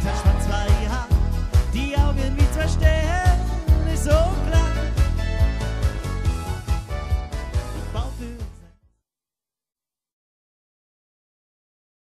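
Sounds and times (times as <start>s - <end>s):
Schlager party medley: 0.0s - 8.9s.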